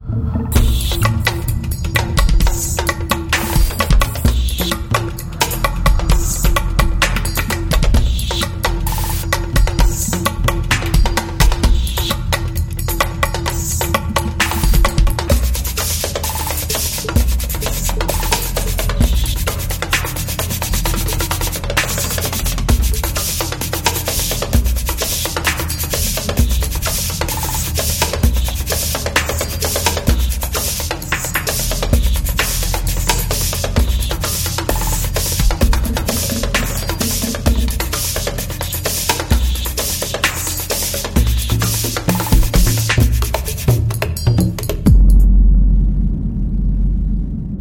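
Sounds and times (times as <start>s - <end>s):
frenetic rhythms: 0.0s - 47.5s.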